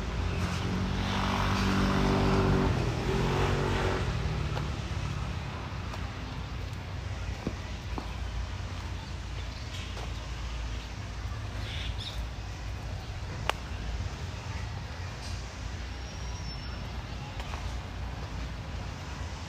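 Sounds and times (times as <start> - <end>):
traffic rumble around Tel Aviv University in Ramat Aviv: 0.0 - 19.4
voices: 1.7 - 19.4.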